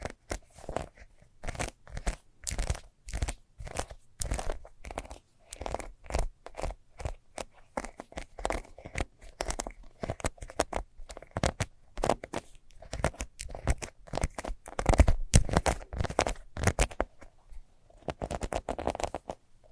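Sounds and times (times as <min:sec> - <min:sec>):
fast scratching: 0:00.0 - 0:17.3, 0:17.9 - 0:19.4.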